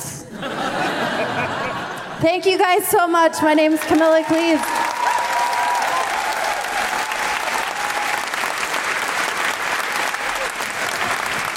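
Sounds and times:
laughter: 0.2 - 2.2
speech: 2.2 - 4.7
theatre audience applause: 3.7 - 11.5
faint cheers: 4.2 - 8.5.

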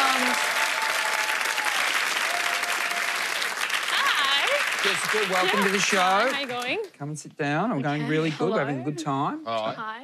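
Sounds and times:
studio audience applauding to welcome a guest: 0.0 - 6.9
speech: 4.8 - 10.0.

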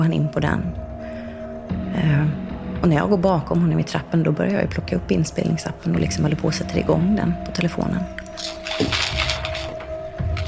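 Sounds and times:
speech: 0.0 - 0.9, 1.9 - 9.0
paper maps rustling as they are taken out: 8.3 - 10.4.

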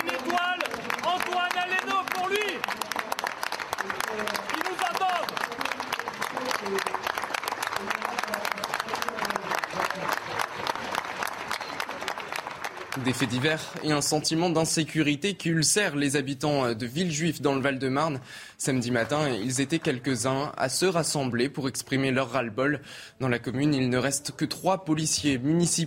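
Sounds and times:
crowd applauding in tribute: 0.0 - 14.4
speech: 13.1 - 25.8.

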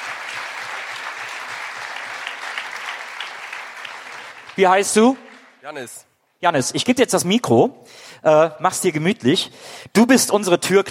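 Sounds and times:
audience applause: 0.0 - 5.8
speech: 4.6 - 10.8.

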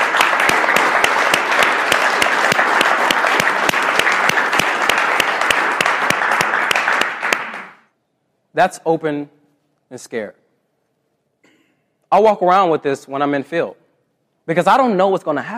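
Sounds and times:
crowd applauding: 0.0 - 7.9
speech: 8.6 - 10.4, 12.1 - 13.8, 14.4 - 15.5.

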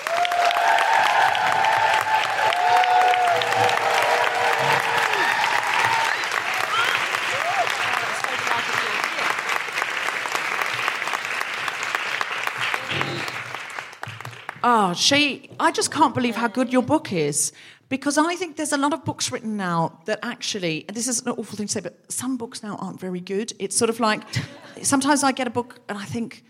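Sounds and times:
audience whooping: 0.0 - 9.3, 12.4 - 13.7
audience clapping for author Sheyi Akiwowo: 0.0 - 14.9
speech: 14.9 - 26.4.

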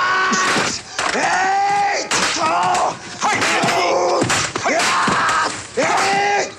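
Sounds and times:
ninjas yelling during film fight scene: 0.0 - 6.5.

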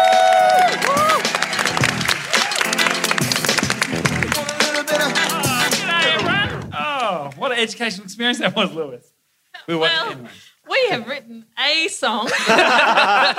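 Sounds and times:
audience applause: 0.0 - 7.4
laughter: 4.8 - 7.1, 12.2 - 13.3
speech: 7.6 - 13.3.

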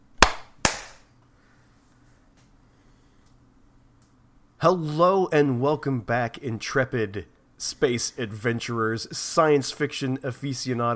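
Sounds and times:
single hand clap for recording sync: 0.2 - 1.0
speech: 4.6 - 10.9.

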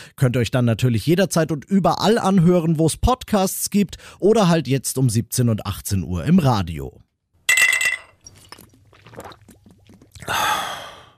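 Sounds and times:
speech: 0.1 - 7.1, 10.2 - 10.7
glasses clinking in a beer garden: 7.5 - 8.6
loud breathy exhale: 10.2 - 11.1.

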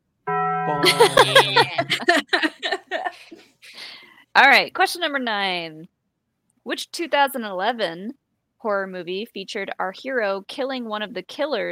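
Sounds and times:
bell ringing: 0.3 - 2.2
speech: 0.7 - 3.8, 4.4 - 6.0, 6.6 - 11.7
people laughing and chattering: 0.8 - 3.3.

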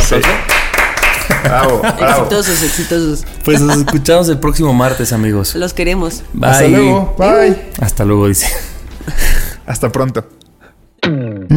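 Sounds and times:
hand clapping: 0.0 - 2.3
overlapping voices: 0.0 - 2.8
speech: 0.1 - 0.6, 1.4 - 10.4, 11.0 - 11.5
laughter: 1.2 - 2.4, 3.5 - 4.2.

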